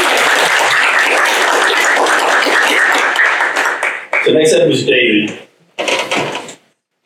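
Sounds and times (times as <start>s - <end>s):
crowd clapping: 0.0s - 4.6s
speech: 4.3s - 6.4s.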